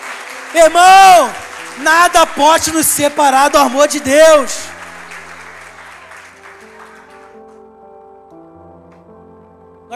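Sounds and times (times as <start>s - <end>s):
audience applauding: 0.0s - 7.6s
organ or keyboard chords: 0.0s - 9.9s
speech: 0.5s - 4.7s.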